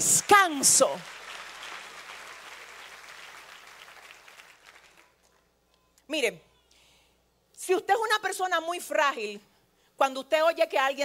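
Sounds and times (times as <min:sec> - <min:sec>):
speech: 0:00.0 - 0:01.2, 0:06.1 - 0:06.5, 0:07.6 - 0:11.0
church congregation applauding: 0:00.2 - 0:05.4.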